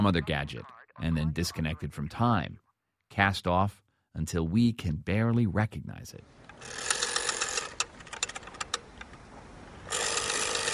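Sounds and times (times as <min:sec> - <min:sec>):
speech: 0:00.0 - 0:06.9
rotary phone dial whirring and clicking: 0:06.5 - 0:09.2, 0:09.9 - 0:10.7.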